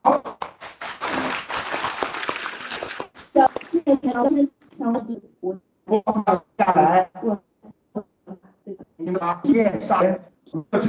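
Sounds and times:
audience applause: 0.8s - 3.1s
speech: 3.4s - 7.5s, 9.2s - 10.8s.

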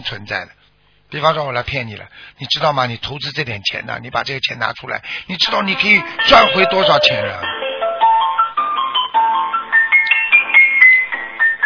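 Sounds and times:
speech: 0.0s - 7.6s
phone ringtone melody during incoming call: 5.7s - 11.6s.

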